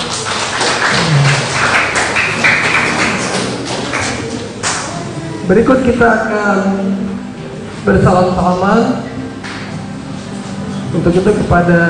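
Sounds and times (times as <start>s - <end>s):
audience applause: 0.0s - 5.2s
murmurs: 0.8s - 1.8s
speech: 5.5s - 7.1s, 7.9s - 9.1s, 10.9s - 11.8s.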